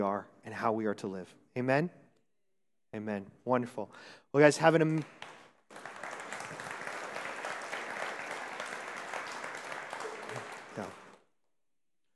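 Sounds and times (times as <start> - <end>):
speech: 0.0 - 2.0, 2.9 - 5.3, 10.8 - 11.0
audience clapping: 4.8 - 11.3.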